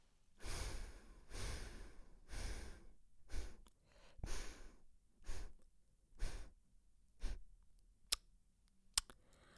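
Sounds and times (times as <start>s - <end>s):
slow alternate nostril breathing as a breathing exercise: 0.4s - 5.6s, 6.2s - 6.6s, 7.2s - 7.5s, 9.2s - 9.5s.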